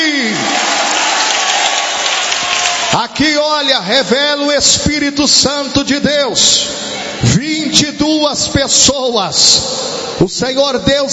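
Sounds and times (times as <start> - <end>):
church congregation applauding during a service: 0.0 - 3.3
speech: 2.9 - 11.1.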